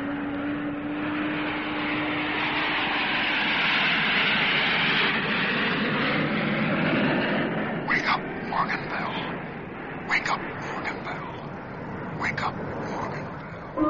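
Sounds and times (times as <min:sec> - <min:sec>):
airplane engines roaring during takeoff: 0:00.0 - 0:13.8.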